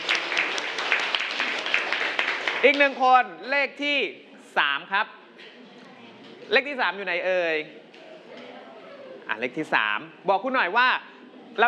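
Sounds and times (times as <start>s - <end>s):
class of students clapping for a classmate's answer: 0.0s - 3.0s
speech: 2.6s - 5.2s, 6.5s - 7.8s, 9.3s - 11.6s.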